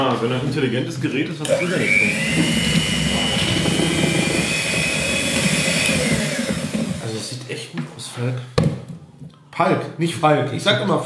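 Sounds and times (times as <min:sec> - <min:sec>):
speech: 0:00.2 - 0:04.2, 0:07.5 - 0:08.6, 0:09.6 - 0:11.0
electric hand mixer motor whirring: 0:01.4 - 0:07.3.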